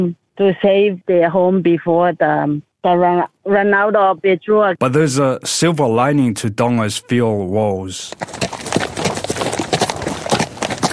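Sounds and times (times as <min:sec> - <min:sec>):
speech: 0:00.0 - 0:08.8
horse hooves clip-clopping as a family rides in Nuku'alofa, Tonga: 0:08.1 - 0:10.9.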